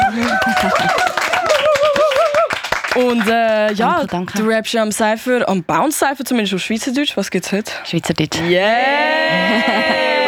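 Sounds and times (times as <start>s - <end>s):
laughter: 0.0s - 2.5s, 8.6s - 10.2s
applause: 0.0s - 4.1s
speech: 3.0s - 10.1s.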